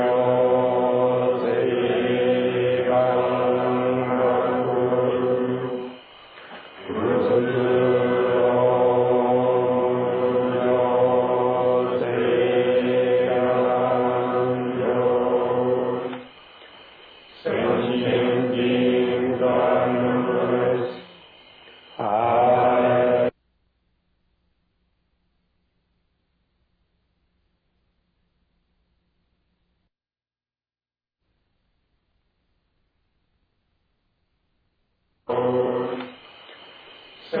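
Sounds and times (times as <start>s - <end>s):
chanting: 0.0s - 23.4s, 35.2s - 37.3s.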